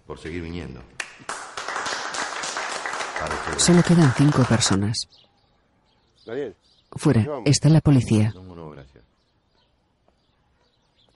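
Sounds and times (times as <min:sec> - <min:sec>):
speech: 0:00.1 - 0:01.4, 0:03.2 - 0:05.3, 0:06.3 - 0:09.1
audience applause: 0:01.0 - 0:04.9.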